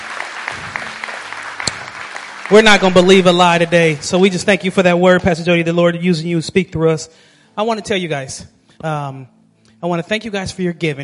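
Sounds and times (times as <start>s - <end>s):
audience hand clapping: 0.0s - 4.8s
speech: 2.5s - 11.0s.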